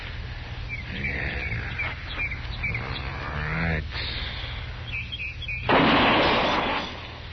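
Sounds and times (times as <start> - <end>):
faint bird chirps: 0.6 - 3.5, 4.2 - 5.7
rifle gunshot fired with the gun steadied on a fence rail: 5.7 - 7.0.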